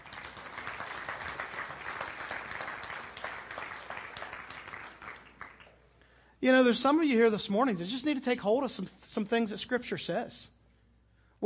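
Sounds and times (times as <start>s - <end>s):
audience clapping: 0.0s - 5.9s
speech: 6.4s - 10.6s.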